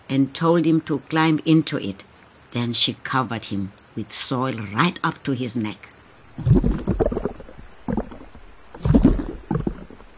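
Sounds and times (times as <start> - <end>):
speech: 0.1 - 7.2
oars dipping in and out of water: 6.4 - 10.1.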